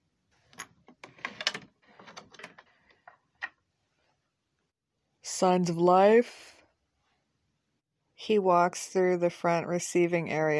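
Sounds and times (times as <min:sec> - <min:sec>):
key unlocking the front door: 0:00.5 - 0:02.7
speech: 0:05.4 - 0:06.5, 0:08.3 - 0:10.5.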